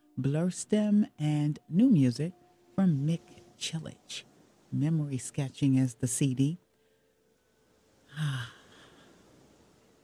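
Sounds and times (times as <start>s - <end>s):
soft hiss: 0.0s - 10.0s
speech: 0.2s - 6.6s, 8.2s - 8.6s
deep breath: 8.1s - 9.5s.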